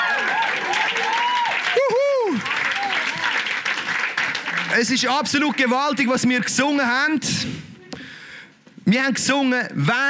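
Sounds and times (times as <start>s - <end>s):
cheering voices and a whoop: 0.0s - 4.8s
audience applause: 0.0s - 6.0s
speech: 4.8s - 7.7s, 8.9s - 10.0s.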